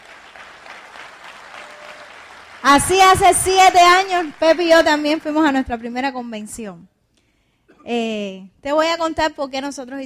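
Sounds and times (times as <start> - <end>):
crowd clapping: 0.0 - 5.9
speech: 2.6 - 6.9, 7.9 - 10.0.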